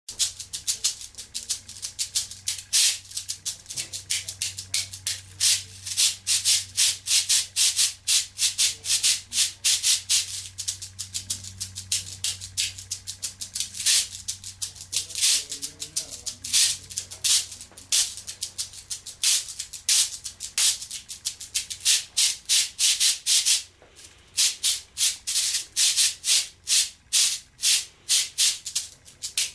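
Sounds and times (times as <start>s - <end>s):
cabasa shaking: 0.1s - 29.5s.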